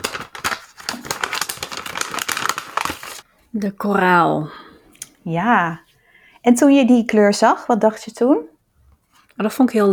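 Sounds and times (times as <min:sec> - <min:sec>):
paper envelope torn open: 0:00.0 - 0:03.2
speech: 0:03.6 - 0:04.6, 0:05.2 - 0:05.8, 0:06.4 - 0:08.5, 0:09.4 - 0:09.9.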